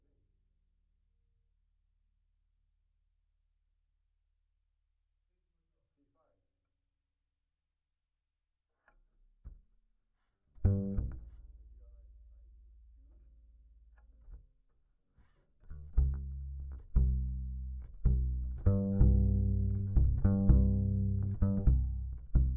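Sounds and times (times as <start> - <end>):
bass guitar recorded by direct input: 10.6 - 14.4, 15.7 - 22.5.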